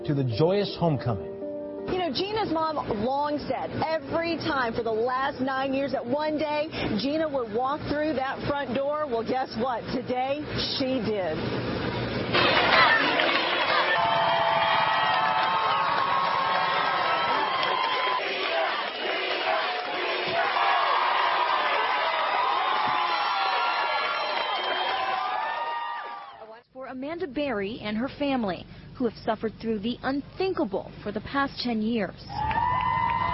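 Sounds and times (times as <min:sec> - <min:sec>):
speech: 0:00.0 - 0:01.4, 0:02.1 - 0:12.6, 0:27.2 - 0:32.6
crowd of onlookers cheering at homecoming: 0:12.2 - 0:26.6, 0:32.4 - 0:33.3.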